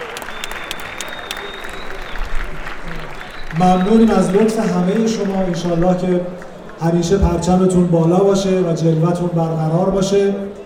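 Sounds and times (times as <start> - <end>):
crowd applauding: 0.0 - 7.8
speech: 3.6 - 10.6.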